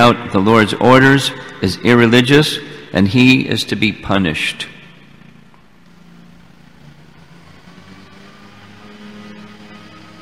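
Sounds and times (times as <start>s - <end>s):
speech: 0.0s - 4.7s
lawnmower running: 5.4s - 10.2s.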